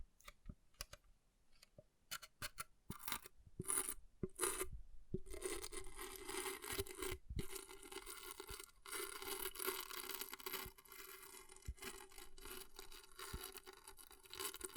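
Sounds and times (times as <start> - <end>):
scratching on an object: 2.2 - 14.7.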